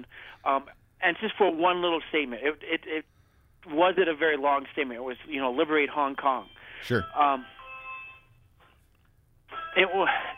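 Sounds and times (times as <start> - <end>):
speech: 0.0 - 7.6, 9.8 - 10.3
smart video doorbell chime: 6.4 - 8.4, 9.5 - 10.3.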